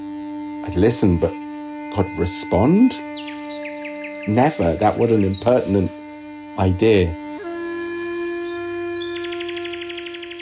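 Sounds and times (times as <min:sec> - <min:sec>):
speech: 0:00.7 - 0:03.6, 0:04.2 - 0:06.0, 0:06.6 - 0:07.2
nightingale singing: 0:02.0 - 0:06.2, 0:08.5 - 0:10.4.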